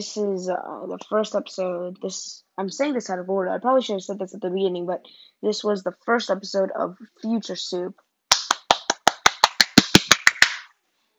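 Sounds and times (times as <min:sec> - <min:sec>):
speech: 0:00.0 - 0:08.0
hand clap: 0:08.3 - 0:10.7.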